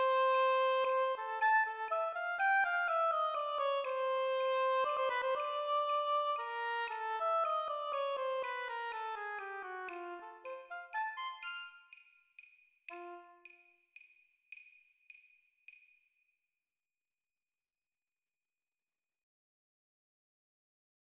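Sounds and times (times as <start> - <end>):
oboe playing: 0.0 - 12.1, 12.9 - 13.6.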